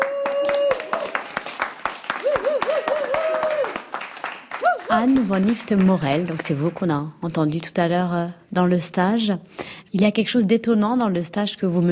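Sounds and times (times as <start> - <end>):
audience applause: 0.0 - 6.6
speech: 4.9 - 11.9.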